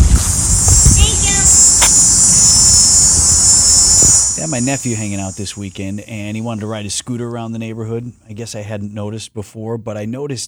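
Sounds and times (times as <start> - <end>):
cicadas buzzing: 0.0 - 7.4
speech: 4.5 - 10.4.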